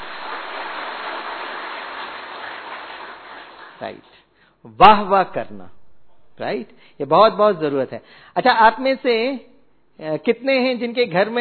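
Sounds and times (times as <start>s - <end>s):
audience clapping loudly: 0.0s - 4.1s
speech: 3.8s - 5.8s, 6.4s - 11.3s.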